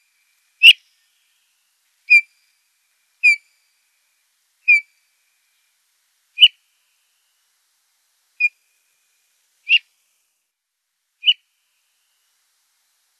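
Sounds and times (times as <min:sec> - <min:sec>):
bullfinch singing: 0:00.6 - 0:00.8, 0:03.2 - 0:03.5, 0:04.7 - 0:04.9, 0:11.2 - 0:11.4.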